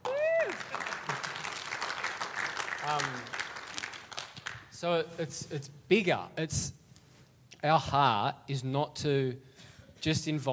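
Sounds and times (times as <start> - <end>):
voices whooping and calling out: 0.0 - 1.0
audience clapping: 0.0 - 4.8
speech: 2.9 - 3.3, 4.8 - 6.8, 7.6 - 10.5.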